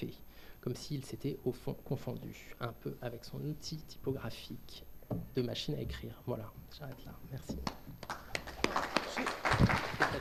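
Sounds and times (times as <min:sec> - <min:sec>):
speech: 0:00.0 - 0:10.1
sparse uneven soft hand claps: 0:07.6 - 0:10.1.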